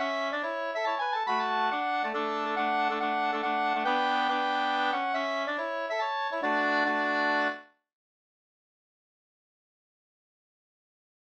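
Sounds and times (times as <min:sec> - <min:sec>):
mazurka: 0:00.0 - 0:07.6.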